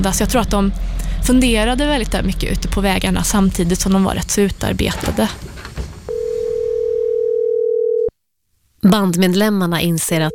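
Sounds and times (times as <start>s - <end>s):
speech: 0.0s - 5.5s, 8.8s - 10.3s
telephone dial tone: 6.1s - 8.1s.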